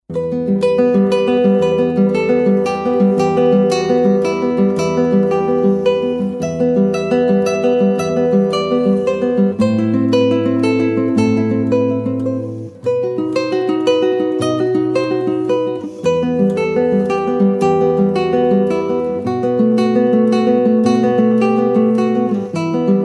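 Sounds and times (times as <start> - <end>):
guitar: 0.1 - 23.0.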